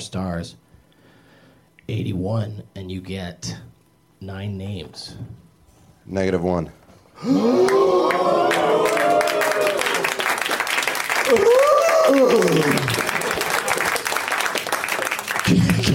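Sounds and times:
speech: 0:00.0 - 0:00.7, 0:01.9 - 0:05.4, 0:06.1 - 0:08.8
long applause: 0:07.2 - 0:15.9.

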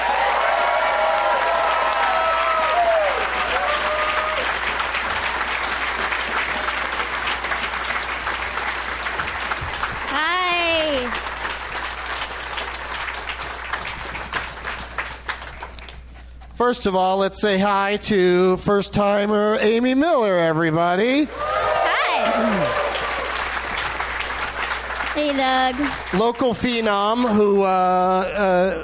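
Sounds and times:
high rising whoop: 0:00.0 - 0:04.5, 0:21.3 - 0:23.4
audience applause: 0:00.0 - 0:16.0, 0:21.3 - 0:27.5
speech: 0:16.7 - 0:21.4, 0:25.3 - 0:28.8.

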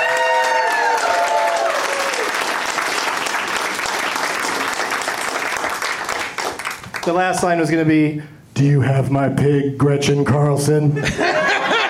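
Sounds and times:
cheers: 0:00.0 - 0:02.8
audience applause for a contestant: 0:00.0 - 0:07.1
speech: 0:07.1 - 0:11.4
laughter: 0:11.0 - 0:11.8.

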